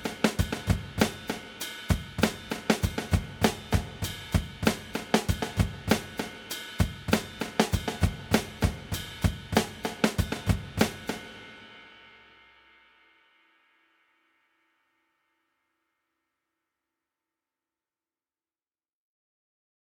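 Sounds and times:
drums through Eventide SP2016 with predelay and delay: 0.0s - 12.6s.

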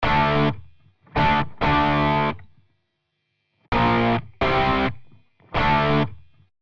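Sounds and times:
distorted rock electric guitar with op-amp distortion: 0.0s - 2.5s, 3.7s - 6.3s.

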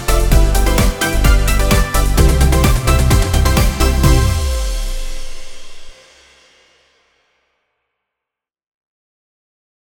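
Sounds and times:
Yamaha Genos2 keyboard schlager track: 0.0s - 5.9s.

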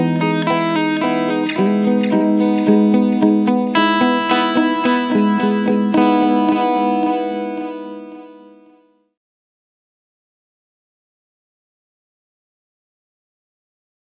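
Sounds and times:
clean medium delay: 0.0s - 8.8s.

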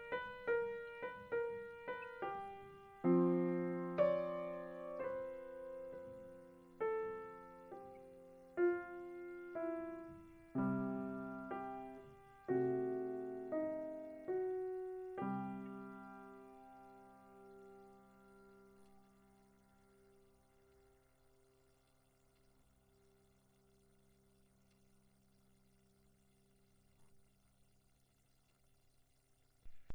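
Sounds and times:
piano improvisation: 0.0s - 18.1s.

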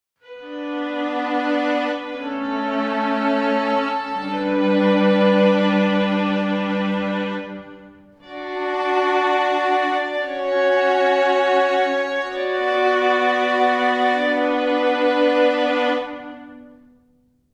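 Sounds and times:
string quartet playing: 0.2s - 17.0s.

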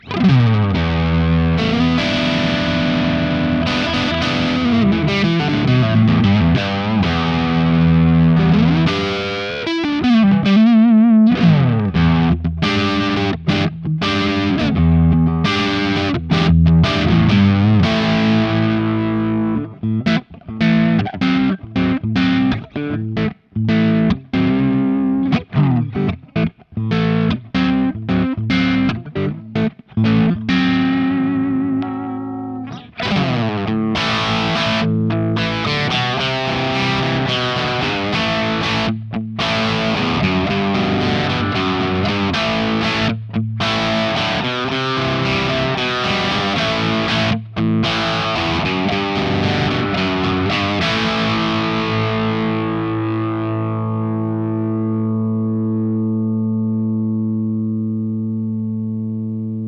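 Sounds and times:
crunch electric guitar with split humbucker: 0.0s - 59.6s.

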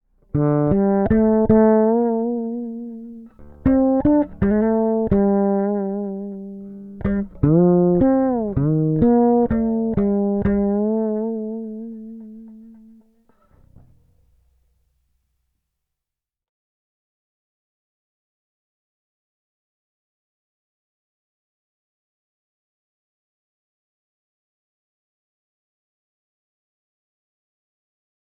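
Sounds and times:
Kuma five-string fretless bass with single coil: 0.2s - 14.4s.

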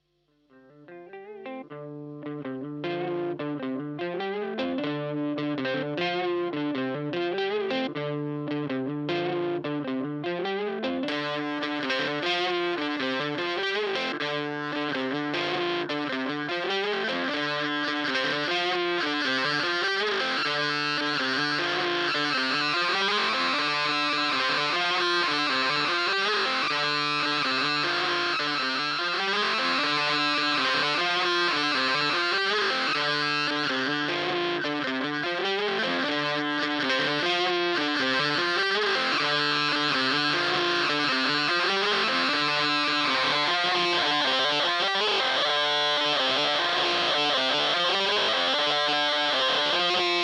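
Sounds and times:
overdrive distortion: 1.2s - 50.2s.

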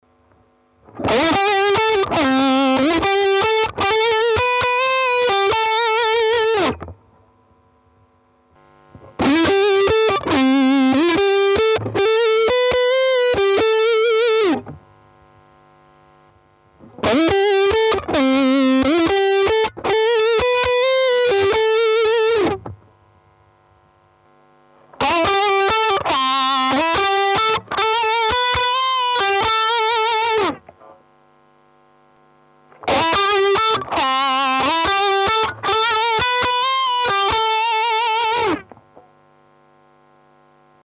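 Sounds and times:
raw Fender electric guitar lead: 0.8s - 7.0s, 8.9s - 14.8s, 16.8s - 22.8s, 24.9s - 30.9s, 32.7s - 39.0s.

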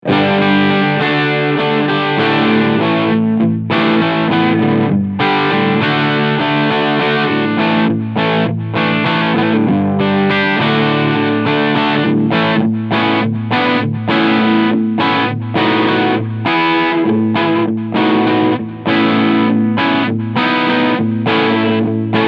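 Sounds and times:
overdrive preamp switched down to half gain: 0.0s - 22.2s.

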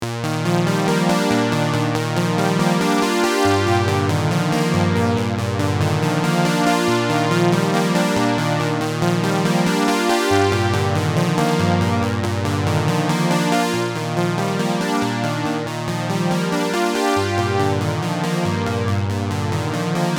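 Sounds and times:
SDD320 chorus effect: 0.0s - 20.1s.

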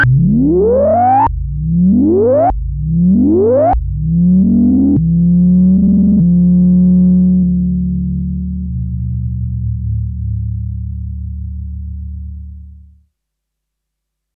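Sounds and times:
Behringer Model D synthesizer resonance and LFO: 0.0s - 10.6s.

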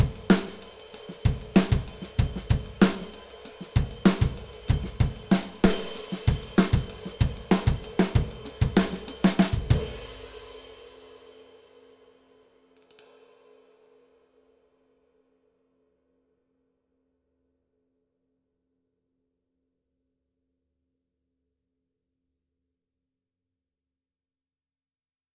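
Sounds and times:
flat ride cymbal: 0.0s - 11.7s.

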